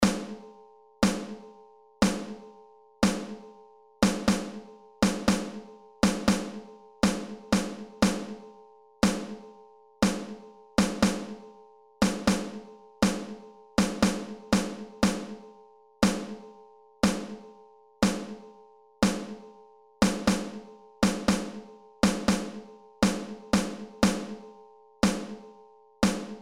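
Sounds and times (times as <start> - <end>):
snare drum rhythms: 0.0 - 0.4, 1.0 - 1.4, 2.0 - 2.4, 3.0 - 3.4, 4.0 - 8.4, 9.0 - 9.4, 10.0 - 11.4, 12.0 - 15.4, 16.0 - 16.4, 17.0 - 17.4, 18.0 - 18.4, 19.0 - 19.4, 20.0 - 24.4, 25.0 - 25.4, 26.0 - 26.4.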